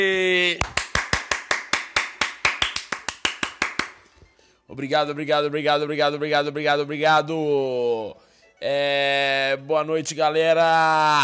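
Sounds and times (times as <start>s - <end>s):
speech: 0.0s - 0.8s, 4.8s - 11.2s
audience clapping: 0.6s - 4.1s.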